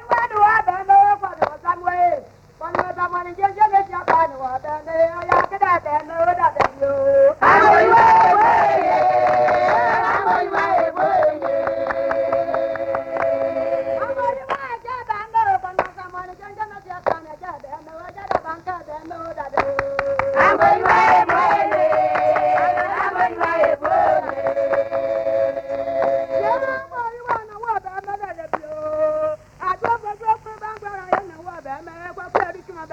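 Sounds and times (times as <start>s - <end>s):
women singing together in a lilting melody: 0.0s - 32.9s
hand claps: 1.4s - 1.6s, 2.7s - 3.0s, 3.8s - 4.4s, 5.2s - 6.9s, 7.6s - 13.7s, 15.7s - 16.2s, 17.0s - 18.7s, 19.3s - 28.8s, 29.8s - 31.4s.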